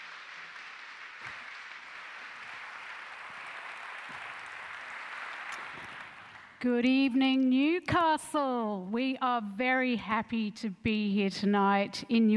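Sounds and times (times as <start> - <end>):
faint audience applause welcoming a panel at an evening event in Newcastle: 0.0 - 6.6
speech: 6.6 - 12.3.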